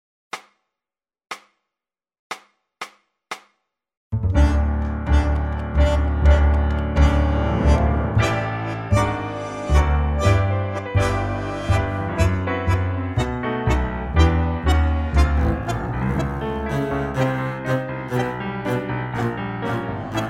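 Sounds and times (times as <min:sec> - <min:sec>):
musical trio: 0:04.2 - 0:20.2.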